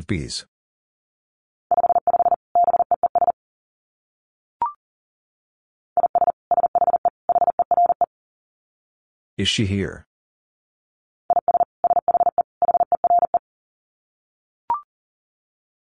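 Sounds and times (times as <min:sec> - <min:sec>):
speech: 0:00.0 - 0:00.5, 0:09.4 - 0:10.1
Morse code tones at 40 wpm: 0:01.7 - 0:03.4, 0:06.0 - 0:08.1, 0:11.3 - 0:13.4.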